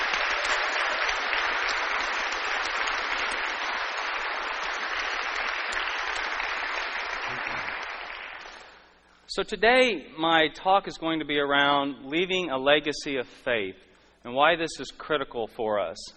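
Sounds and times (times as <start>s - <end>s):
audience applause: 0.0s - 8.9s
speech: 9.3s - 16.1s.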